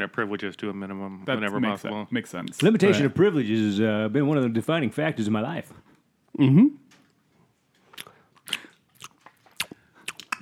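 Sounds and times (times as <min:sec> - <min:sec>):
speech: 0:00.0 - 0:06.8
crunchy chewing of nuts close to a microphone: 0:07.9 - 0:10.4.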